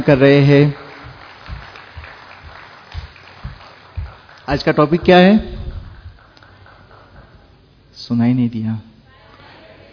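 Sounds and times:
speech: 0.0s - 0.8s, 4.5s - 5.5s, 8.1s - 8.9s
audience applause welcoming the main speaker of a session: 0.0s - 7.5s.

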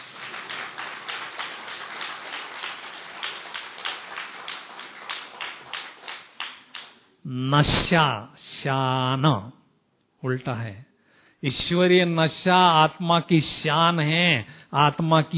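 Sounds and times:
audience clapping: 0.0s - 7.0s
speech: 7.2s - 9.6s, 10.2s - 15.3s.

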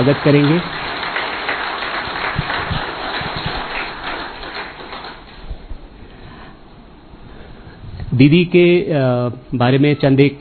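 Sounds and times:
speech: 0.0s - 0.8s, 8.2s - 10.3s
audience applause welcoming a Brahma Kumaris speaker: 0.0s - 5.4s.

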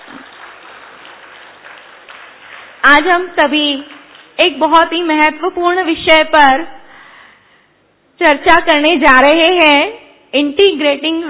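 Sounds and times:
audience applause at a spiritual welcome gathering: 0.0s - 2.8s
speech: 2.8s - 6.8s, 8.2s - 11.2s.

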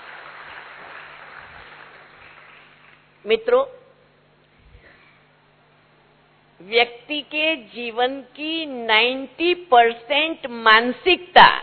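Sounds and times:
audience clapping: 0.0s - 3.2s
speech: 3.2s - 3.8s, 6.6s - 11.6s.

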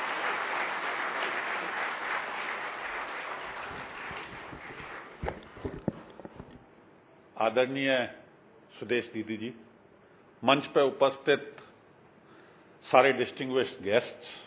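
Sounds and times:
loud crowd applause: 0.0s - 5.5s
speech: 7.4s - 8.2s, 8.8s - 9.7s, 10.4s - 11.6s, 12.9s - 14.4s.

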